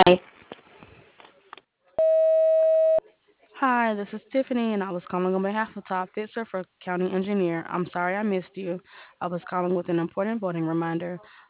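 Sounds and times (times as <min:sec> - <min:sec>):
speech: 0:00.0 - 0:00.3, 0:03.6 - 0:11.4
answering machine beep: 0:02.0 - 0:03.0.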